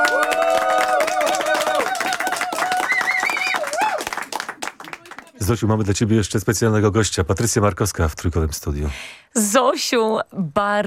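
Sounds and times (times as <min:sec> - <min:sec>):
applause: 0:00.0 - 0:05.5
speech: 0:05.4 - 0:10.8.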